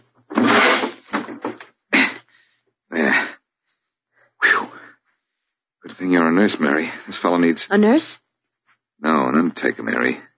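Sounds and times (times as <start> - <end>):
door being opened: 0.3 - 1.7
speech: 6.0 - 8.2, 9.0 - 10.3.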